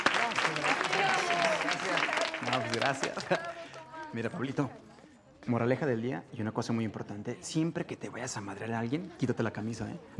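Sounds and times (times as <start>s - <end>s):
audience applause for a man being praised: 0.0s - 3.8s
speech: 2.6s - 4.8s, 5.4s - 10.1s.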